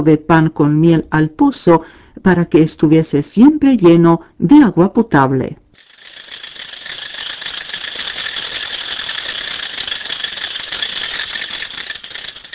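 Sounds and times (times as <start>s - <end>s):
speech: 0.0s - 5.9s
wooden matraca rattle being spun: 5.8s - 12.5s.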